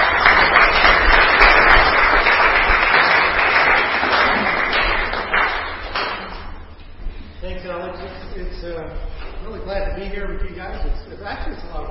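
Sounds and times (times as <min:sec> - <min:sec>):
audience applauding to welcome a speaker: 0:00.0 - 0:06.6.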